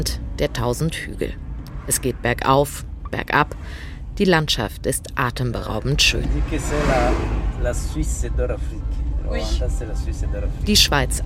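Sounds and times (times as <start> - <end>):
car engine and road rumble in hilly Rwandan countryside: 0.0 - 11.2
speech: 0.0 - 11.2.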